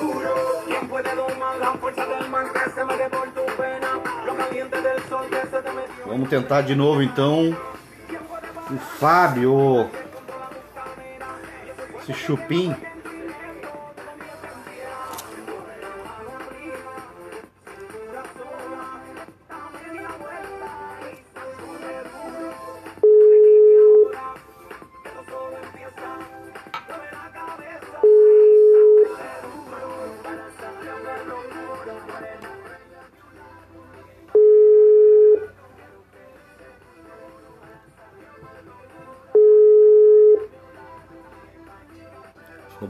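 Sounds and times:
speech: 4.6 - 7.8, 8.7 - 10.0, 12.1 - 12.9
ringback tone of a phone ringing unanswered during a live call: 23.0 - 24.3, 28.0 - 29.2, 34.4 - 35.5, 39.4 - 40.5.

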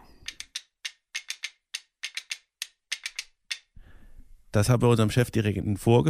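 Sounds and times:
wooden clapper of two wooden logs with loops struck together: 0.0 - 3.8
speech: 4.5 - 6.0.

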